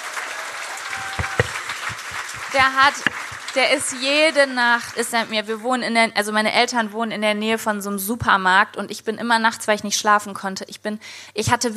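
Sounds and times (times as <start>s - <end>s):
audience applause: 0.0s - 5.5s
speech: 2.5s - 11.7s.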